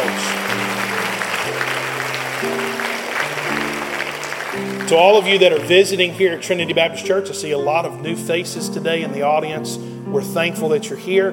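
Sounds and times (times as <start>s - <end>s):
applause for graduates in a Baptist church service: 0.0s - 6.9s
steady musical chords: 0.0s - 11.3s
speech: 4.9s - 11.3s.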